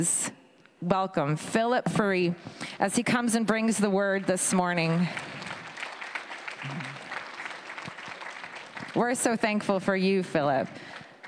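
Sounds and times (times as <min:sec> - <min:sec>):
speech: 0:00.0 - 0:05.3, 0:09.0 - 0:10.9
audience clapping: 0:03.5 - 0:11.2.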